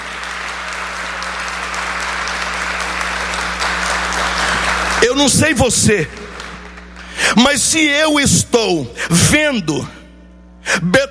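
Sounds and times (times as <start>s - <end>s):
audience applause: 0.0s - 7.2s
speech: 5.0s - 6.2s, 7.3s - 10.0s, 10.7s - 11.0s.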